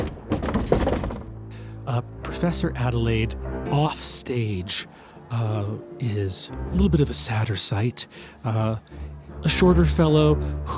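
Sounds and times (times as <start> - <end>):
door opening: 0.0 - 1.3
speech: 1.9 - 10.7.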